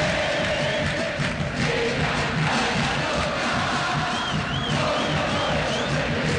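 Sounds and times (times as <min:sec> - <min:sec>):
large crowd of football fans chanting: 0:00.0 - 0:06.3
faint wavering whistle-like tone: 0:04.2 - 0:06.0.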